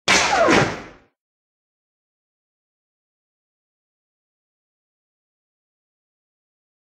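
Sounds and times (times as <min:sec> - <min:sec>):
ricochet: 0:00.1 - 0:01.2.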